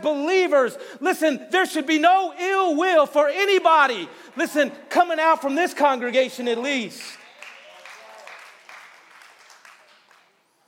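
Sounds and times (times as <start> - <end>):
speech: 0.0 - 7.2
polite light golf clapping: 7.0 - 10.6.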